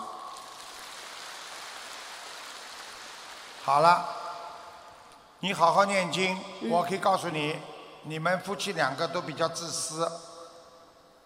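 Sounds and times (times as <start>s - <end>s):
applause: 0.0s - 5.0s
speech: 3.6s - 4.2s, 5.4s - 10.3s.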